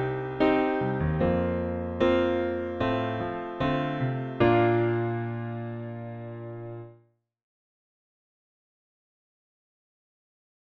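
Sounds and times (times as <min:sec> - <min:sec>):
piano playing B flat: 0:00.0 - 0:07.0.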